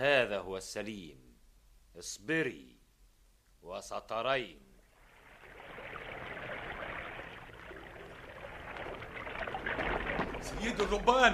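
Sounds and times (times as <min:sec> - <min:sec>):
speech: 0:00.0 - 0:01.3, 0:02.0 - 0:02.8, 0:03.6 - 0:04.7, 0:10.4 - 0:11.3
water sloshing and splashing around a small boat on open water: 0:04.9 - 0:11.3.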